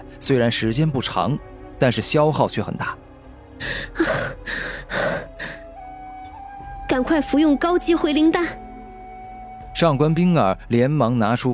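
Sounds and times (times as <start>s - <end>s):
speech: 0.2s - 3.0s, 3.6s - 4.1s, 7.0s - 8.6s, 9.8s - 11.5s
voice actor panting heavily after a fight with a two-headed giant eagle: 3.6s - 5.7s.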